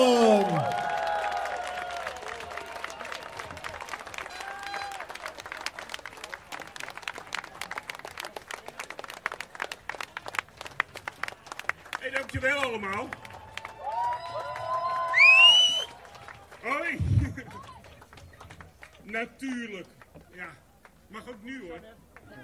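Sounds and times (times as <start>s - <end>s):
cheering and whoops: 0.0s - 3.6s, 4.2s - 5.3s, 13.1s - 16.3s
large audience applause: 0.0s - 19.0s, 21.7s - 22.4s
speech: 12.3s - 13.2s, 19.1s - 22.4s.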